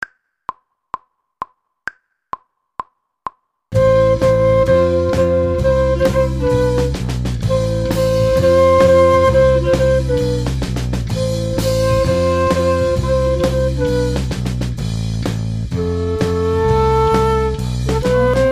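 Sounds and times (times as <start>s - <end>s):
flute: 3.7s - 14.6s, 15.7s - 18.5s.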